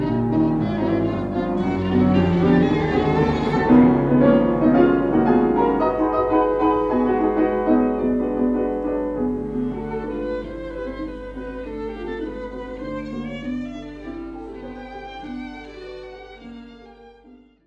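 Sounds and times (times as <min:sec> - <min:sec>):
cello in a piano quartet allegro: 0:00.0 - 0:17.6
piano in a piano quartet allegro: 0:00.0 - 0:17.6
violin in a piano quartet allegro: 0:00.0 - 0:17.6.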